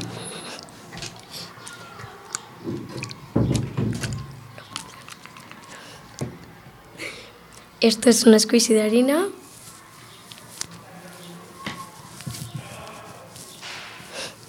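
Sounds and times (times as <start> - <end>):
water sloshing and splashing: 0.0 - 6.9
crackly drips: 0.0 - 7.8
speech: 7.8 - 9.4.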